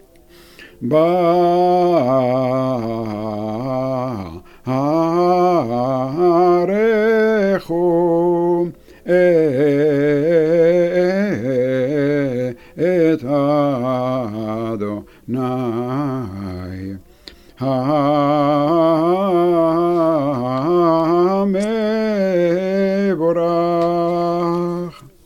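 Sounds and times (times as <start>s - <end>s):
Jewish liturgical chant: 0.8s - 25.2s.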